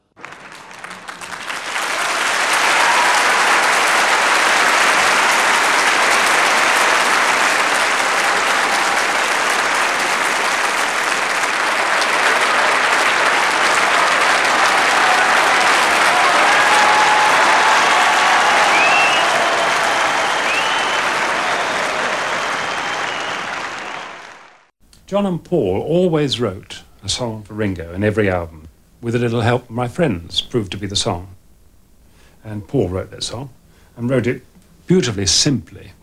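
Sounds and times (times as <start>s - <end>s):
concert audience applause: 0.0s - 24.7s
speech: 25.2s - 31.4s, 32.4s - 36.0s.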